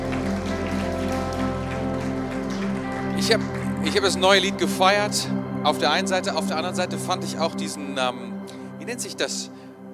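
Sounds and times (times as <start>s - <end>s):
audience applause for the band: 0.0s - 5.0s
speech: 3.2s - 9.9s.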